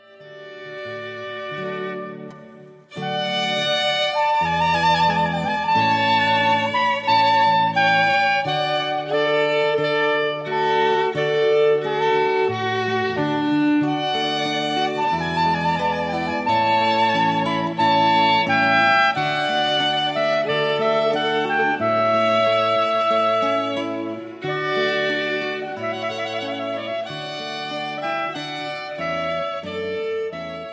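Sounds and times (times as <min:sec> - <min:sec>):
trumpet piece: 0:00.1 - 0:30.7.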